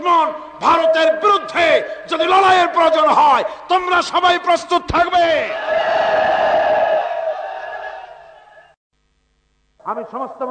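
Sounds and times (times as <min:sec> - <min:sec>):
speech: 0:00.1 - 0:06.0, 0:09.8 - 0:10.4
political rally crowd chanting: 0:05.5 - 0:08.7.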